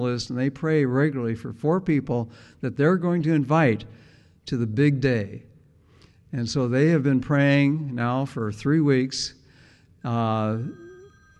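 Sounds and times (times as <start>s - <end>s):
speech: 0.0s - 5.5s, 6.3s - 9.4s, 10.0s - 10.8s
mobile phone ringtone: 10.4s - 11.3s.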